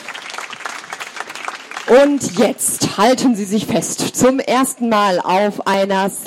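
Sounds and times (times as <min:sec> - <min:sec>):
audience applause: 0:00.0 - 0:02.5
speech: 0:01.9 - 0:06.2.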